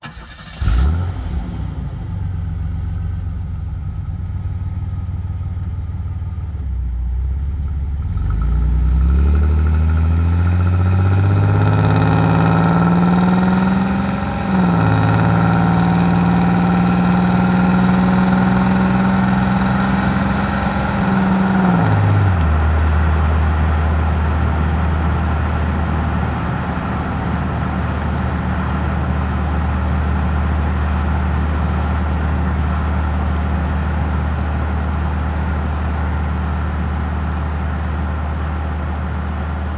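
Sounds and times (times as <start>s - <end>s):
car driving: 0.0s - 39.6s.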